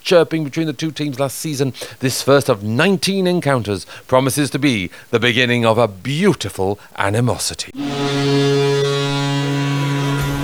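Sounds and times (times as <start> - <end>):
speech: 0.1 - 8.9
Mariners baseball stadium home run horn: 7.8 - 10.4.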